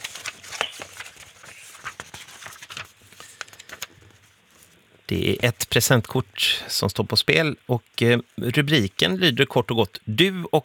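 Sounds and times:
paper pages being flipped through: 0:00.0 - 0:04.8
speech: 0:05.1 - 0:10.6.

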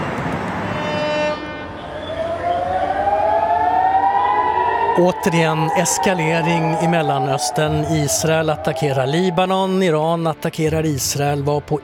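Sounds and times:
air raid siren wailing: 0:00.0 - 0:10.9
crowd cheering and commotion: 0:01.7 - 0:10.2
speech: 0:05.0 - 0:11.8.

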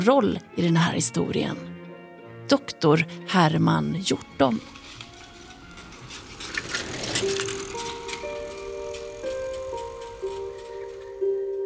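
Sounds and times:
speech: 0:00.0 - 0:01.7, 0:02.5 - 0:04.8
bicycle ticking and rattling while riding: 0:04.5 - 0:11.3.

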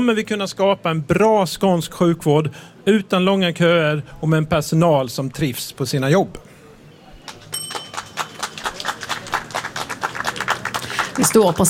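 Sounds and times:
speech: 0:00.0 - 0:06.5, 0:11.2 - 0:11.6
applause from a nearby campaign booth: 0:07.2 - 0:11.6.

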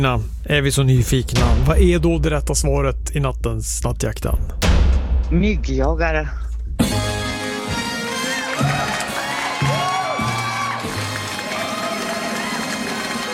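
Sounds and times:
speech: 0:00.0 - 0:04.7, 0:05.3 - 0:06.4
fanfare sound effect: 0:06.8 - 0:13.3
applause sound effect: 0:08.1 - 0:13.3.

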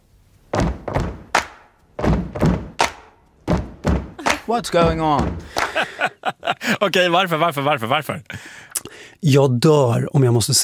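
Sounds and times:
rhythmic stomping to a beat: 0:00.5 - 0:06.2
clapping to a beat: 0:04.2 - 0:04.6, 0:05.4 - 0:05.9
laughter: 0:04.2 - 0:07.0
speech: 0:04.5 - 0:10.6.

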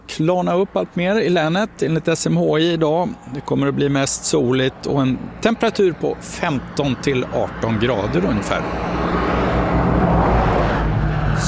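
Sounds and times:
road traffic with cars passing on the old Köpingsvägen near Munktorp: 0:00.0 - 0:11.4
speech: 0:00.2 - 0:09.3.

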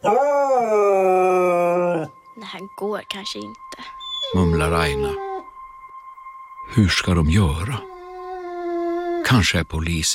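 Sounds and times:
speech: 0:00.0 - 0:00.3, 0:02.8 - 0:05.3, 0:06.7 - 0:07.9, 0:09.3 - 0:10.1
dog howling and whimpering: 0:00.0 - 0:02.3, 0:04.0 - 0:05.6, 0:07.5 - 0:09.4.

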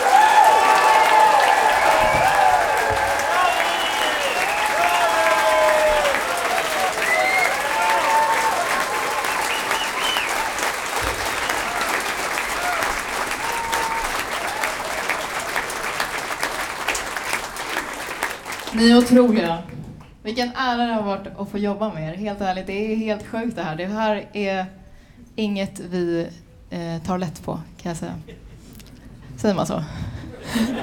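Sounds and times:
people whooping and cheering: 0:00.0 - 0:16.1
applause for a string orchestra: 0:00.0 - 0:19.5
speech: 0:18.9 - 0:19.6, 0:20.2 - 0:24.8, 0:25.4 - 0:28.4, 0:29.4 - 0:30.8
laughter: 0:30.2 - 0:30.8.

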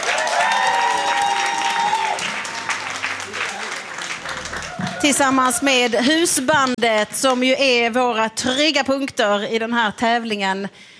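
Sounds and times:
audience applause: 0:00.0 - 0:07.1
speech: 0:05.0 - 0:10.9.

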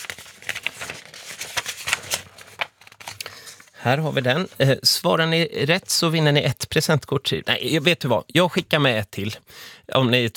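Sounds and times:
pages rustling in a binder: 0:00.0 - 0:04.6
speech: 0:03.8 - 0:10.3.

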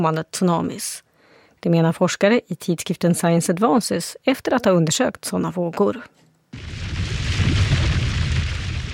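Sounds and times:
speech: 0:00.0 - 0:06.8
underwater volcanic eruption boom: 0:06.6 - 0:08.9.

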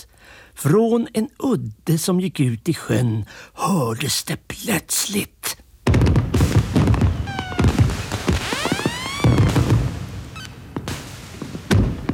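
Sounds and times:
speech: 0:00.0 - 0:06.1
fireworks bangs, pops and crackling bursts: 0:05.8 - 0:12.1
whistling firework rockets: 0:06.4 - 0:12.1.

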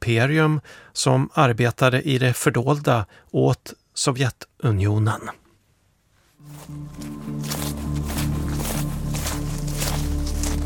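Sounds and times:
speech: 0:00.1 - 0:05.4, 0:06.4 - 0:07.6
footsteps crunching through dry forest leaves: 0:06.4 - 0:10.6
low sustained musical drone: 0:06.4 - 0:10.6.

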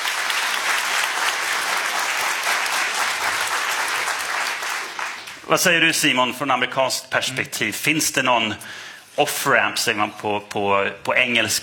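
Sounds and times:
audience applause: 0:00.0 - 0:05.5
speech: 0:05.5 - 0:11.6.

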